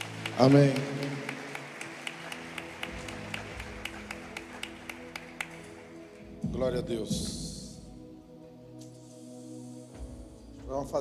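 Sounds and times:
rhythmic audience clapping: 0.0 - 7.5
speech: 0.4 - 1.0, 6.6 - 7.4, 10.7 - 10.9.

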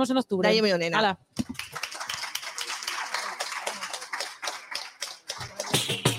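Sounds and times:
speech: 0.0 - 1.8
audience applause: 1.4 - 6.0.

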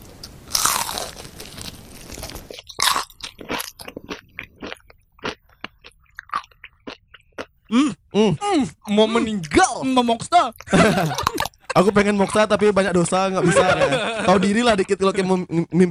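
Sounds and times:
crunching crispy fried chicken skin: 0.5 - 4.2
speech: 7.7 - 15.8
laughter: 10.6 - 12.3, 13.2 - 14.7.

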